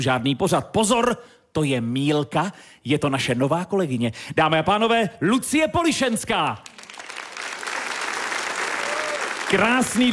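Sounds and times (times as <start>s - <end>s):
speech: 0.0s - 6.8s, 9.5s - 10.1s
audience applause in Bohumín greeting a guest on stage: 6.6s - 10.1s.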